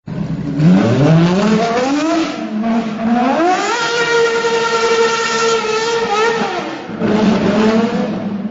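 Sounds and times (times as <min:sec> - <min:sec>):
Ferrari FXX engine: 0:00.0 - 0:08.4.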